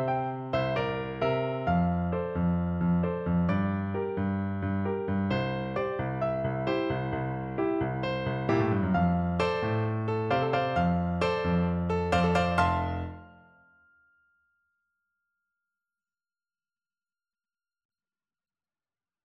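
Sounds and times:
piano piece: 0.0s - 13.6s.

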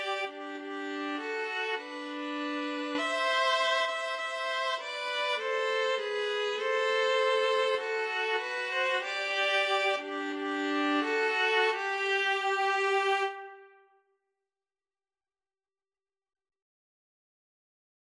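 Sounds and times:
string trio playing: 0.0s - 13.6s.

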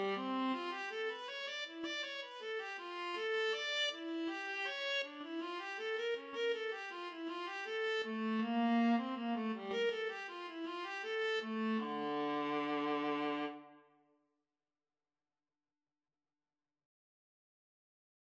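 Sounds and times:
violin in a violin and viola duet: 0.0s - 13.9s.

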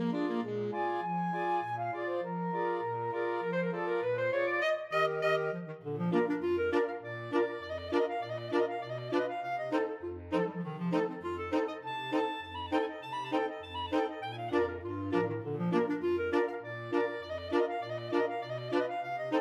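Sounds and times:
clarinet polka with flexible mixed ensemble of six players: 0.0s - 19.3s.

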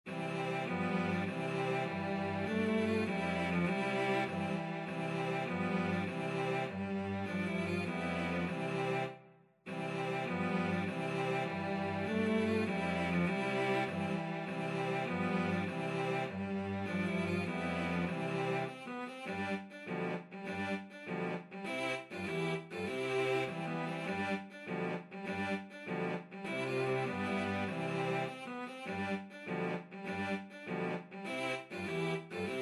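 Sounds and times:
cello quartet: 0.1s - 32.6s.

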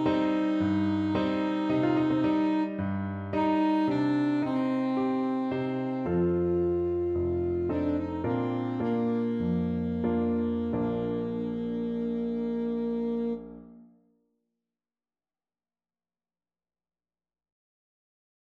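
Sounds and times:
fado alto saxophone: 0.0s - 13.9s.

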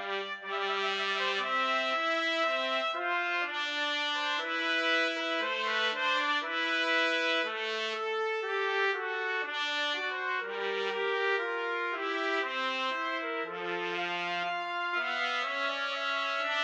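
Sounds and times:
trumpet trio playing a pastorale: 0.0s - 16.6s.

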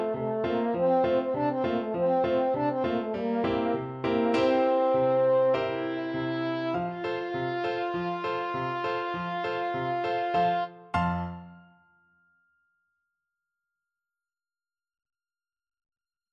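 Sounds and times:
french horn: 0.0s - 10.7s.

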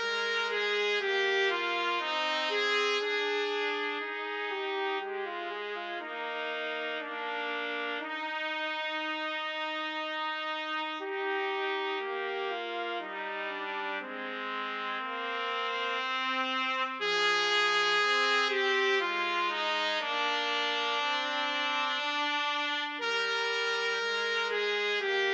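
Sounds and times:
clarinet concerto: 0.0s - 25.3s
trumpet trio: 0.0s - 25.3s.

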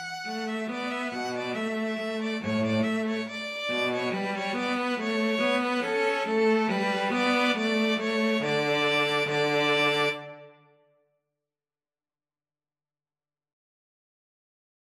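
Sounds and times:
string trio playing: 0.0s - 10.5s.

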